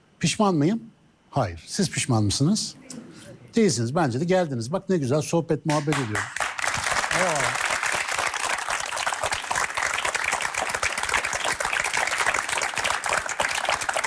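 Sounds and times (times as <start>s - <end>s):
speech: 0.2s - 6.4s
audience applause: 5.7s - 14.0s.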